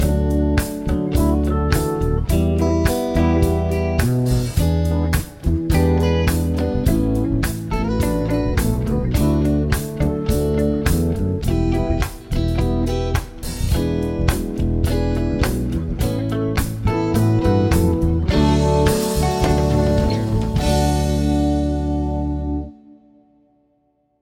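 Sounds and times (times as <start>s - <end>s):
chord progressions with applied chords: 0.0s - 23.7s.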